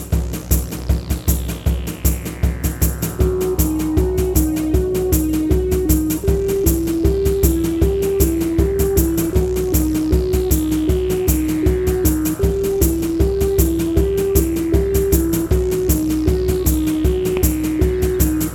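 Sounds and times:
bottleneck slide prelude: 0:00.3 - 0:18.5.

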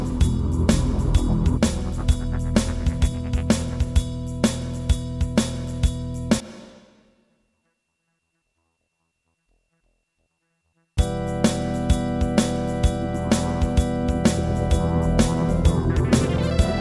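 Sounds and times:
bombastic instrumental music: 0:00.0 - 0:06.8, 0:11.0 - 0:16.7.

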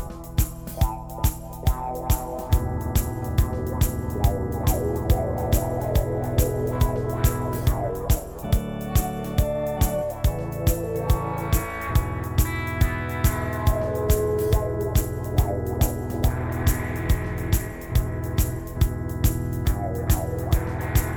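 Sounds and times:
electric guitar: 0:00.0 - 0:21.1.

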